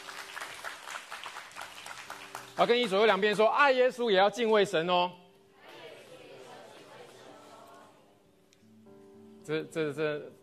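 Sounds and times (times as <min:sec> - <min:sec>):
audience clapping: 0:00.0 - 0:03.5
speech: 0:02.6 - 0:05.2, 0:09.5 - 0:10.4.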